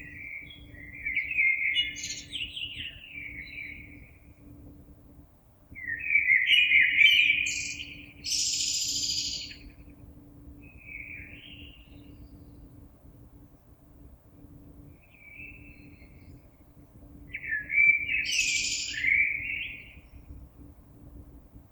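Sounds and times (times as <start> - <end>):
blackbird: 0.0 - 4.0, 5.8 - 9.8, 10.7 - 12.6, 17.3 - 20.2.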